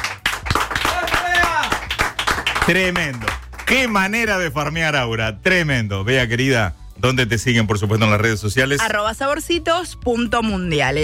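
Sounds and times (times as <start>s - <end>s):
audience rhythmic clapping for a guest cook on an entertainment show: 0.0s - 4.6s
speech: 2.7s - 11.0s.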